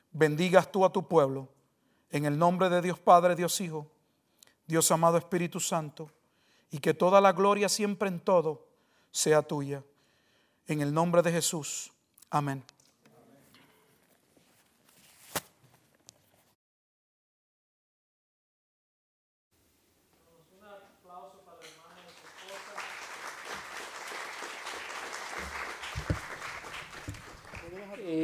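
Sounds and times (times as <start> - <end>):
speech: 0.2 - 4.0, 4.7 - 9.9, 10.7 - 12.8
audience applause: 21.9 - 28.0.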